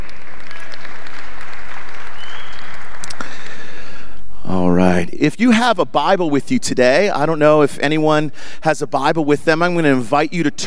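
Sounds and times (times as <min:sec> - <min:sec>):
crowd applause: 0:00.0 - 0:03.9
speech: 0:04.5 - 0:10.6.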